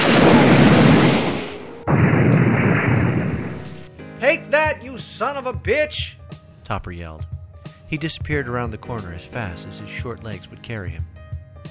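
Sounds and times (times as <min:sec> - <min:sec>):
rocket explosion: 0:00.0 - 0:03.9
speech: 0:05.2 - 0:11.2.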